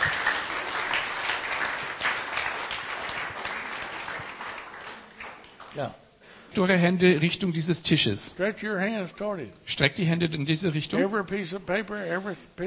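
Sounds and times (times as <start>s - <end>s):
church congregation applauding: 0.0s - 5.8s
speech: 5.8s - 12.6s.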